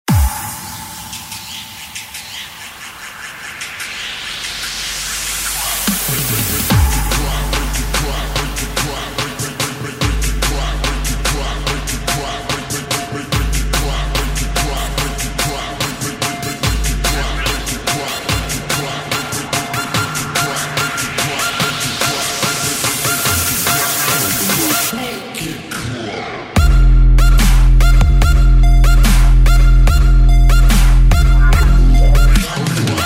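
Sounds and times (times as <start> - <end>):
bass boosted music with bass bombs: 0.0 - 24.9, 26.6 - 33.0.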